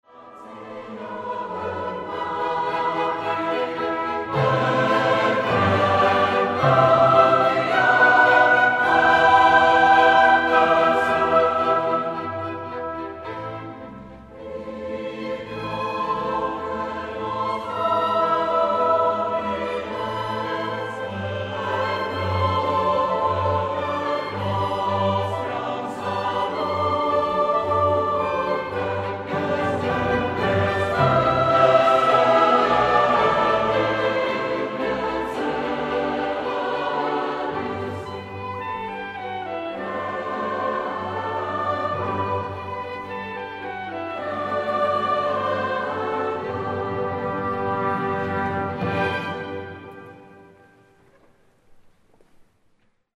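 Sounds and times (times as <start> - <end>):
vocal ensemble singing live: 0.1 - 50.5.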